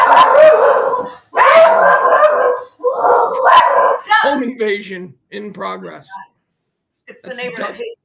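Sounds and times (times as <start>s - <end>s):
neighbor's dogs barking next door: 0.0s - 4.1s
speech: 4.6s - 6.3s, 7.1s - 7.9s.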